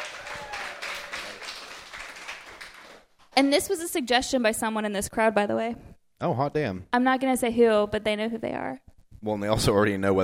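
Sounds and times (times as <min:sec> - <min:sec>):
audience applause: 0:00.0 - 0:03.1
whistle or cheer: 0:00.2 - 0:01.4
speech: 0:03.4 - 0:10.2.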